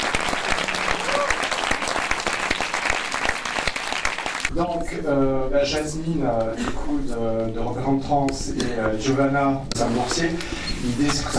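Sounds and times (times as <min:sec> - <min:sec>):
audience applause: 0:00.0 - 0:04.5
speech: 0:04.6 - 0:11.3.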